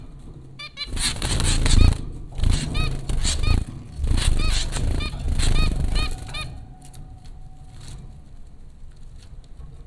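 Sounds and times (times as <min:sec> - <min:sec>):
zebra finch calls: 0:00.6 - 0:06.7.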